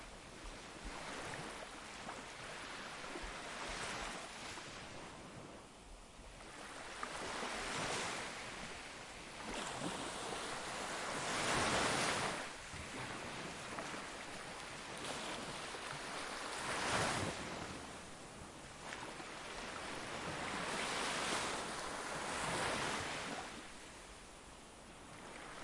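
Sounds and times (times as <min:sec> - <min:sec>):
sea waves: 0:00.0 - 0:05.3, 0:06.4 - 0:25.6.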